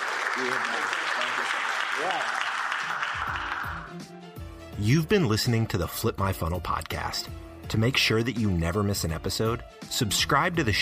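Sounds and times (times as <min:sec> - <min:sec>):
crowd round of applause: 0:00.0 - 0:04.1
speech: 0:00.4 - 0:03.4, 0:04.8 - 0:10.8.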